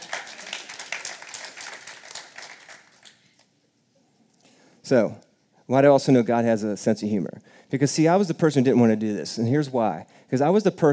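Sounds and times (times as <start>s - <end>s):
audience clapping: 0.0s - 3.5s
speech: 4.9s - 10.9s.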